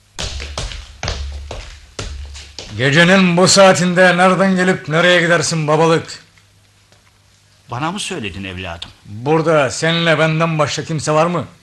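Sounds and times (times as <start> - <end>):
hard footsteps approaching quickly: 0.0 - 3.3
speech: 2.7 - 6.2, 7.7 - 11.6.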